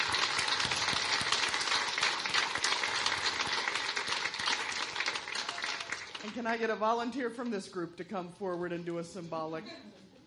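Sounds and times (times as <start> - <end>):
audience applause: 0.0 - 6.4
speech: 6.3 - 10.0.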